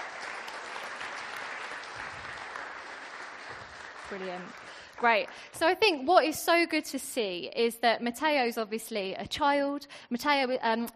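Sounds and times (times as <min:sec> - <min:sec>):
audience applause: 0:00.0 - 0:05.6
speech: 0:04.1 - 0:10.9.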